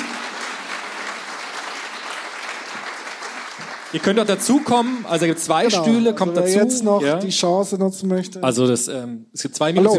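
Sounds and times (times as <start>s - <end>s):
audience applause: 0.0s - 6.2s
speech: 3.9s - 9.9s.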